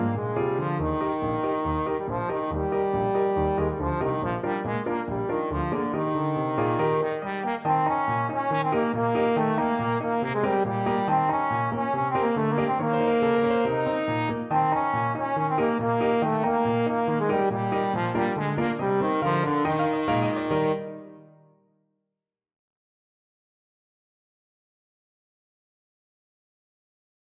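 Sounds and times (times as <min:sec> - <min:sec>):
trombone playing bulgar dance tune: 0:00.0 - 0:21.2.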